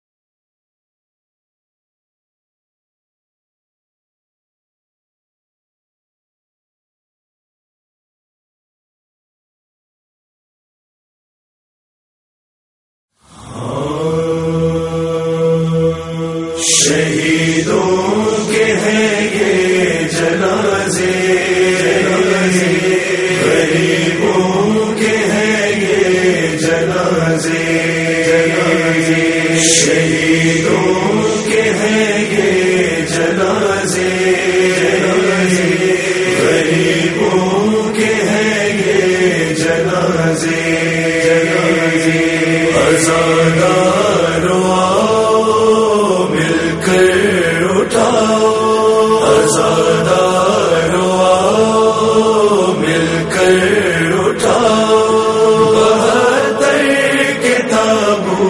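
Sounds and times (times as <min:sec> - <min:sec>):
nohay noha lament recitation: 0:13.2 - 0:58.4.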